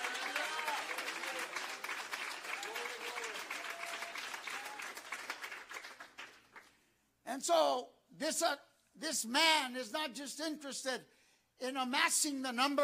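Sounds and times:
audience clapping loudly: 0.0 - 6.8
speech: 7.4 - 12.8.

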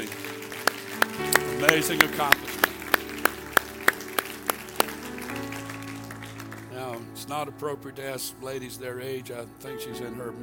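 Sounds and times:
sharp handclaps: 0.0 - 7.0
speech: 1.6 - 2.6, 7.3 - 10.4.

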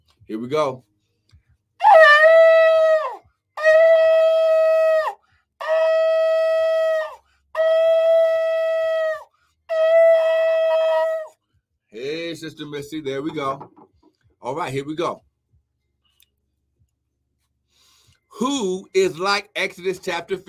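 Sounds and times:
speech: 0.3 - 0.9, 12.4 - 13.8, 14.4 - 15.3, 18.4 - 20.4
shofar being blown: 1.8 - 11.4.

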